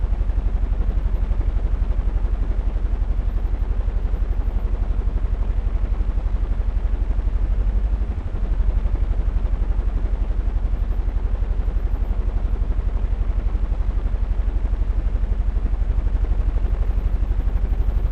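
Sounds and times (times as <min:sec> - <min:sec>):
giant fan blade low-frequency rumble: 0:00.0 - 0:18.1.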